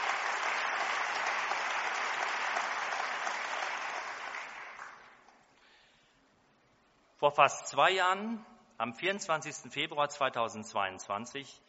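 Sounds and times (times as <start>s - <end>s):
audience applause: 0.0s - 5.2s
speech: 7.2s - 11.6s.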